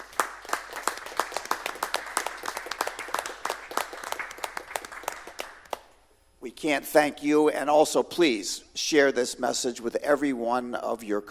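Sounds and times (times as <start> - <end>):
round of applause from a small group: 0.0 - 5.9
speech: 6.6 - 11.2.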